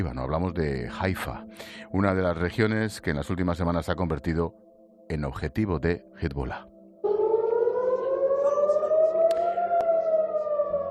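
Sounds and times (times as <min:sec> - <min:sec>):
speech: 0:00.0 - 0:06.7
rocket warning air-raid siren wailing: 0:07.0 - 0:10.8.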